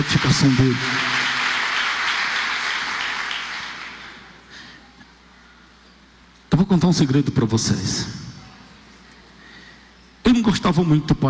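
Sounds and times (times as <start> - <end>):
speech: 0.0 - 1.1, 6.6 - 8.2, 10.5 - 11.2
audience applause: 0.0 - 4.4.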